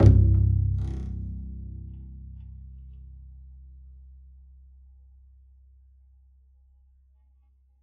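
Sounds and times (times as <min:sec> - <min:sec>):
double bass pizzicato: 0:00.0 - 0:04.3.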